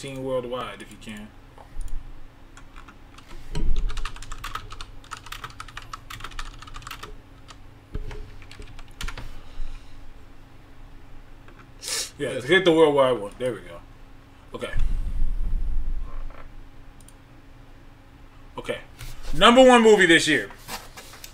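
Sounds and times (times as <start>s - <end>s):
speech: 0.0s - 1.4s, 12.2s - 13.8s, 14.5s - 14.9s, 18.6s - 20.6s
computer keyboard typing a Google search: 2.6s - 9.3s.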